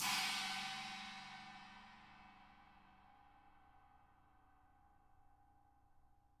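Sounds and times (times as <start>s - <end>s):
china crash cymbal: 0.0s - 2.6s.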